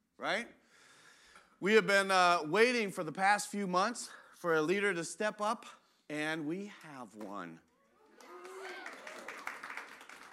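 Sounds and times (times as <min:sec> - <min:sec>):
speech: 0:00.2 - 0:00.6, 0:01.6 - 0:07.7
audience clapping: 0:08.1 - 0:10.3.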